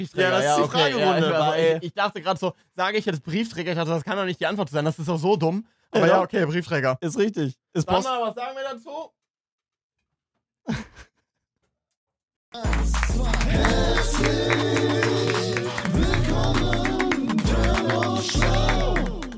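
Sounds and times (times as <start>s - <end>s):
speech: 0.0s - 9.2s, 10.7s - 11.1s, 12.6s - 15.2s
audience applause: 12.6s - 19.3s.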